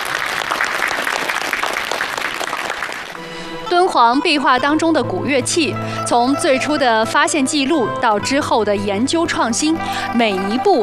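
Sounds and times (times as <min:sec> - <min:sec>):
audience applause: 0:00.0 - 0:03.5
speech: 0:03.7 - 0:10.8.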